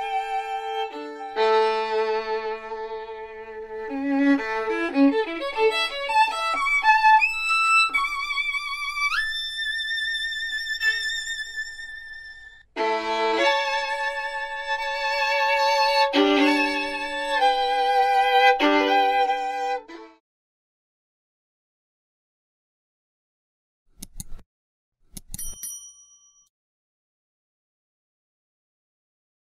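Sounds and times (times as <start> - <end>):
violin: 0.0 - 20.2.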